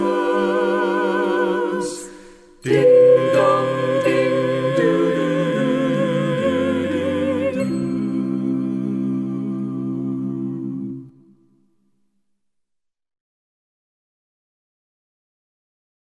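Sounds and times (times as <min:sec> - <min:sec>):
a cappella Christmas singing: 0:00.0 - 0:11.3.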